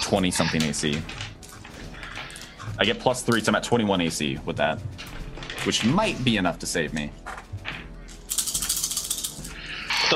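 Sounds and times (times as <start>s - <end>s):
speech: 0.1s - 1.3s, 2.8s - 7.4s
handful of dice rattling and rolling: 7.2s - 9.5s.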